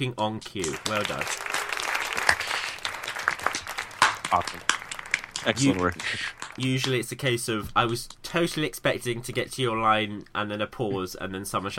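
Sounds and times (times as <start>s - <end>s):
speech: 0.0s - 1.7s, 4.3s - 4.8s, 5.4s - 11.7s
round of applause: 0.6s - 6.9s.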